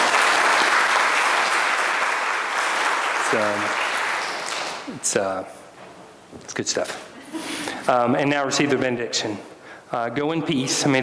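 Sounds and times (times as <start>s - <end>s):
audience applause: 0.0s - 4.9s
speech: 3.3s - 3.8s, 4.9s - 5.6s, 6.3s - 11.0s.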